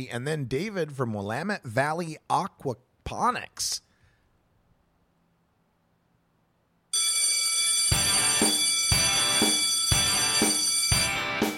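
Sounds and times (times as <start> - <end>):
speech: 0.0 - 3.8
bell ringing: 7.0 - 11.5.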